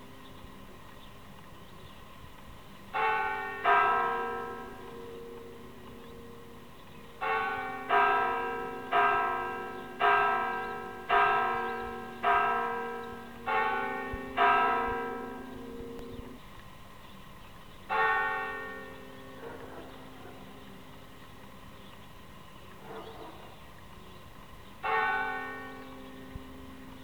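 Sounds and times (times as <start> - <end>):
church bells ringing a rogation toll in Sangüesa: 2.9 - 16.4, 17.9 - 21.2, 24.8 - 27.0.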